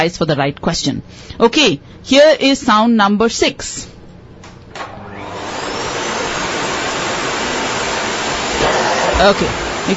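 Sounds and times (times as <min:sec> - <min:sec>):
speech: 0:00.0 - 0:04.0, 0:09.2 - 0:09.9
vacuum cleaner running and changing direction: 0:04.7 - 0:09.9.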